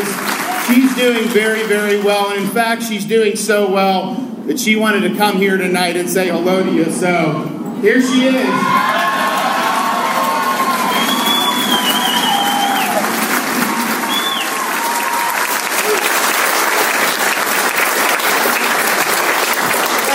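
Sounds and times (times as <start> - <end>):
standing ovation applause: 0.0 - 2.5, 8.3 - 20.1
speech: 0.7 - 9.3
crowd cheering and shouting: 7.8 - 17.2, 19.4 - 20.1
high whistles: 10.1 - 16.6.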